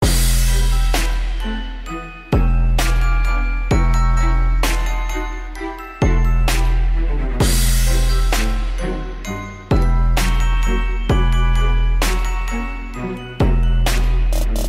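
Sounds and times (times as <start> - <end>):
trap music mix: 0.0 - 14.6.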